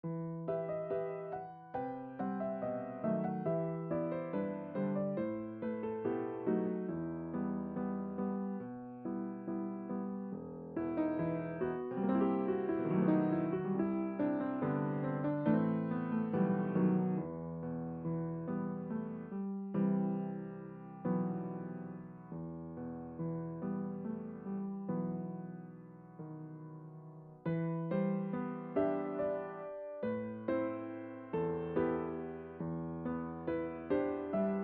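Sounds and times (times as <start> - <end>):
piano: 0.0 - 34.6.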